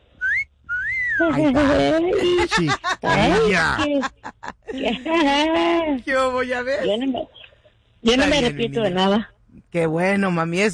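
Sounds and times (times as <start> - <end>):
wolf whistle: 0.2 - 1.3
laughter: 1.2 - 5.8
speech: 1.2 - 7.4, 8.0 - 10.7.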